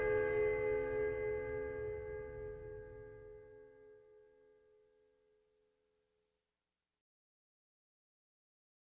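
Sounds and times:
instrumental requiem music: 0.0s - 3.2s.

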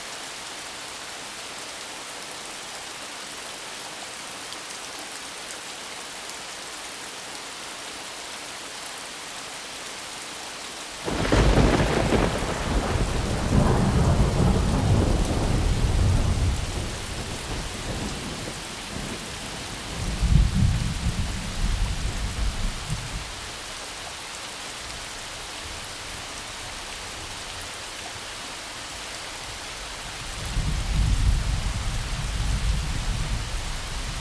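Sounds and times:
thunderstorm: 11.1s - 23.3s, 30.3s - 34.1s.

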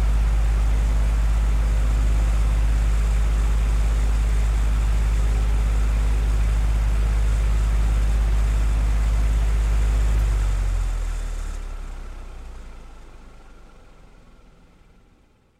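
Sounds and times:
household electric fan turning on and off: 0.0s - 11.8s.

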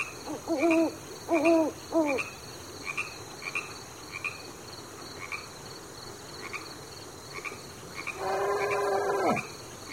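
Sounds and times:
animals at a riverside: 0.2s - 2.3s, 8.0s - 9.6s.

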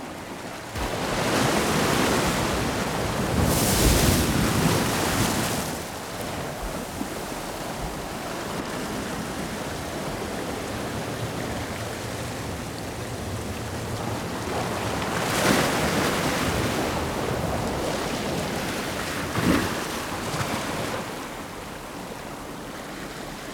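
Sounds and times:
waves crashing through a blow hole in the rocks: 0.8s - 22.7s.

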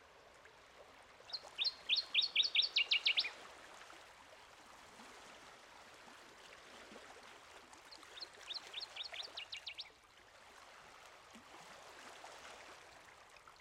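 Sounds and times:
Northern Waterthrush: 1.3s - 3.3s, 8.2s - 9.9s.

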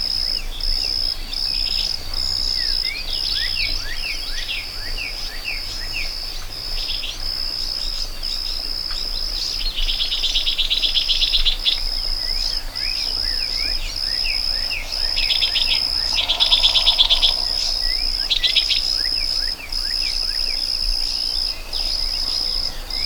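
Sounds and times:
crickets in a meadow: 0.0s - 23.0s
birds in a meadow: 11.7s - 23.0s.

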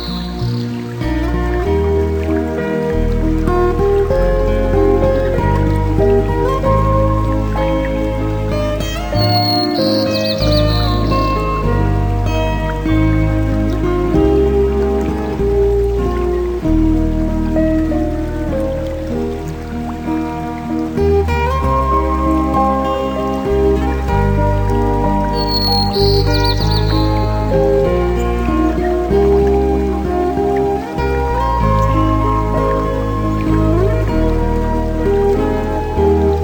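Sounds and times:
clean and clear guitar: 0.0s - 36.4s.

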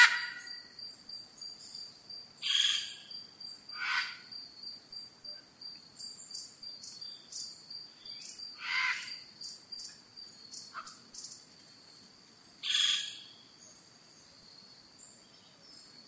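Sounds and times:
birds in the rainforest at dawn in Costa Rica: 0.0s - 16.0s.

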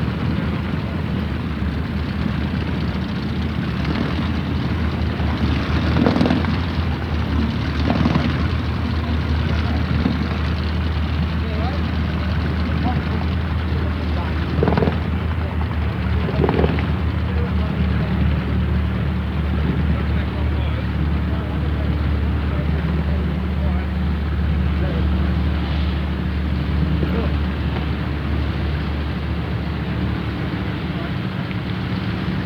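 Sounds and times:
ships in the harbor ambience: 0.0s - 32.4s.

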